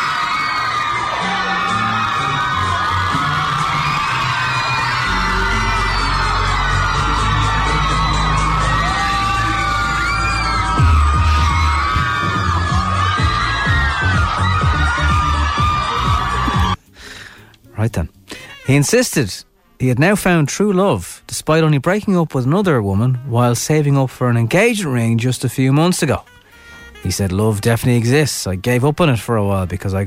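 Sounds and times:
fans cheering and yelling at Shannon Airport: 0.0s - 16.8s
speech: 18.7s - 26.4s, 27.0s - 30.0s.

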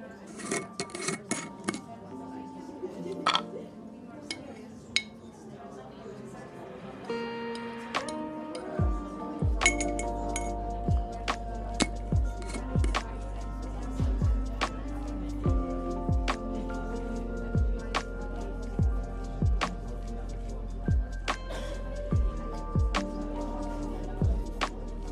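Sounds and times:
murmured conversation in a coffee shop: 0.0s - 25.1s
cups and cutlery clinking: 0.1s - 1.9s, 3.0s - 3.6s, 4.2s - 5.3s, 9.6s - 10.6s, 11.8s - 12.9s.

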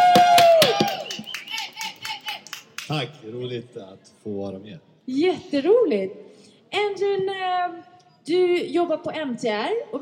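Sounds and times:
small group applauding: 0.0s - 3.1s
speech: 2.9s - 10.0s.

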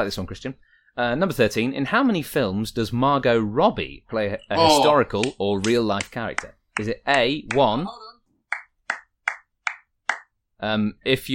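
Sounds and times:
speech: 0.0s - 8.2s, 10.6s - 11.3s
person clapping hands: 5.2s - 7.8s, 8.5s - 10.3s.

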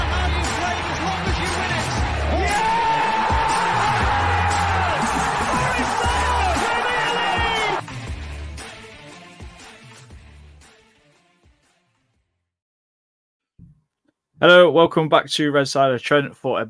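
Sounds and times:
stadium crowd cheering a Nottingham Forest goal at the City Ground: 0.0s - 7.8s
speech: 14.4s - 16.6s.

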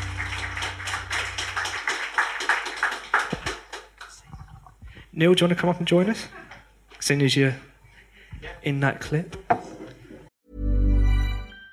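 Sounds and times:
low hum: 0.0s - 2.4s
audience applause: 0.0s - 4.2s
speech: 5.2s - 7.7s, 8.4s - 9.5s.

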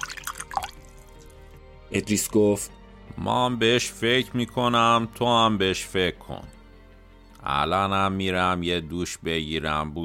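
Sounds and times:
whisky being poured into a glass: 0.0s - 1.4s
speech: 1.9s - 6.6s, 7.4s - 10.0s.

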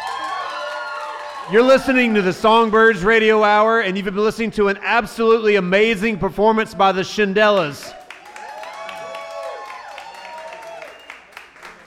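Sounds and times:
audience applause: 0.0s - 2.2s, 8.0s - 11.8s
speech: 1.5s - 8.0s.

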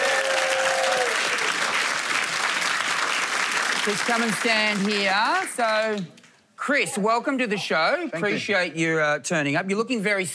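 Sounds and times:
brief high whoop: 0.0s - 1.5s
audience applause welcoming a guest on stage: 0.0s - 6.0s
speech: 3.9s - 10.3s.

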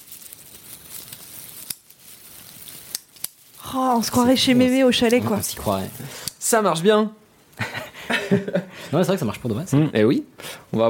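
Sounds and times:
four-color pen clicks imitating crackling fire: 0.0s - 3.4s
soft hiss: 0.0s - 10.8s
speech: 3.7s - 7.2s, 8.3s - 10.8s
laughter: 7.6s - 8.9s.

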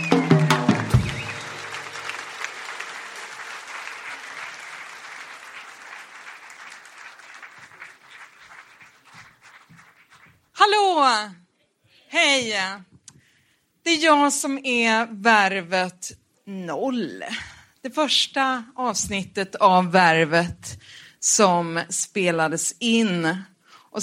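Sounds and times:
audience applause: 0.0s - 10.5s
speech: 12.1s - 12.9s, 13.8s - 24.0s.

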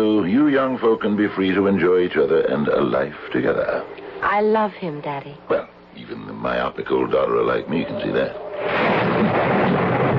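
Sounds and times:
speech: 0.0s - 9.0s
thunder: 8.5s - 10.1s.

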